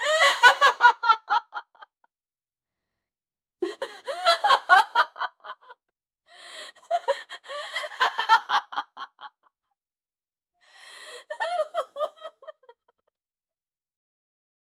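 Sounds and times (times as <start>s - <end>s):
woman laughing sinisterly: 0.0s - 1.9s, 3.6s - 5.7s, 6.5s - 9.3s, 11.0s - 12.8s.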